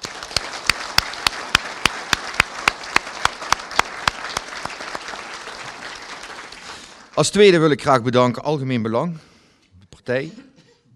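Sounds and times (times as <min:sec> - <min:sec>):
sharp loud claps in quick even rhythm: 0:00.0 - 0:07.2
audience applause: 0:00.0 - 0:07.5
speech: 0:07.2 - 0:09.3, 0:10.1 - 0:10.4.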